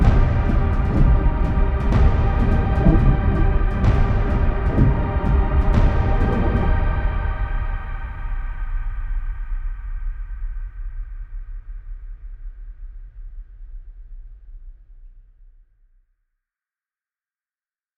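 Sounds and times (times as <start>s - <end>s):
dark ambient sounds: 0.0s - 8.9s.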